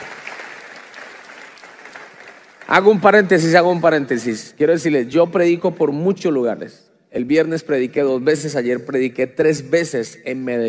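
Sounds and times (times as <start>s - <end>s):
church congregation applauding after a scripture reading: 0.0s - 4.3s
speech: 2.7s - 10.6s.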